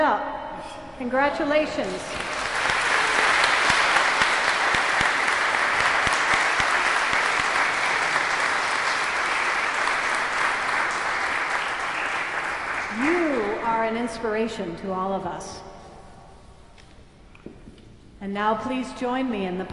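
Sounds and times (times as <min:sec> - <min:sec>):
speech: 0:01.0 - 0:02.3, 0:13.9 - 0:15.7, 0:18.2 - 0:19.7
crowd applause: 0:02.0 - 0:13.6.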